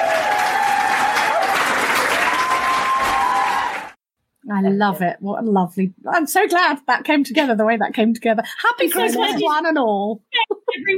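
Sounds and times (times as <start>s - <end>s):
wild applause sound effect from button: 0.0s - 4.0s
speech: 4.5s - 10.9s.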